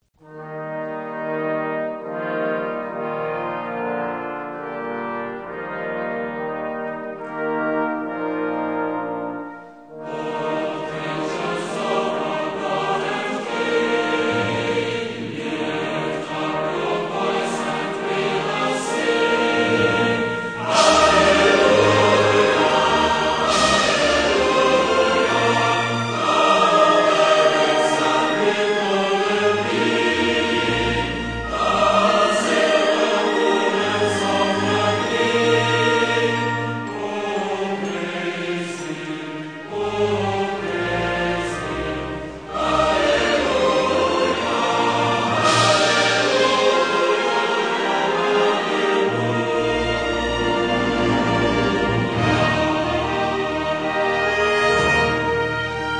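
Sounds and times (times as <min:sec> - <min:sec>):
orchestra playing hymns: 0:00.2 - 0:55.9
choir singing hymns: 0:00.4 - 0:55.9.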